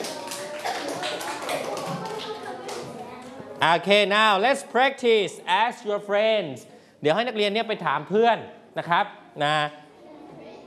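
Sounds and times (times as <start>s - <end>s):
children clapping for themselves: 0.0s - 3.4s
speech: 3.6s - 9.8s.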